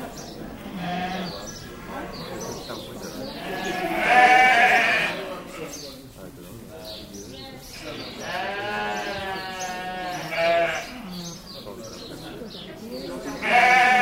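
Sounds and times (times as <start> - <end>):
sheep bleating in a lambing shed: 0.6 - 1.4, 3.4 - 5.3, 8.2 - 11.0, 13.4 - 14.0.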